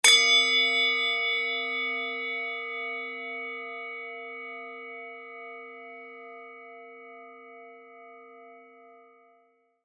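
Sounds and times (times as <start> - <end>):
Japanese rin bowl crash in C: 0.0 - 3.6.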